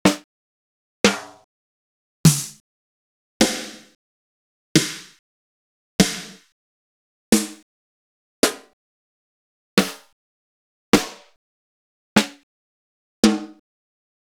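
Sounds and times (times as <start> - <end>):
acoustic snare drum: 0.1 - 0.3, 2.3 - 2.6, 4.8 - 5.2, 6.0 - 6.5, 7.4 - 7.6, 11.0 - 11.3, 13.3 - 13.6.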